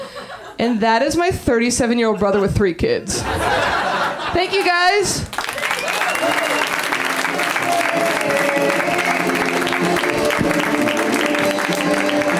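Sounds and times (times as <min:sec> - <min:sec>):
speech: 0:00.7 - 0:05.4
laughter: 0:02.2 - 0:05.0
audience applause: 0:05.3 - 0:12.3.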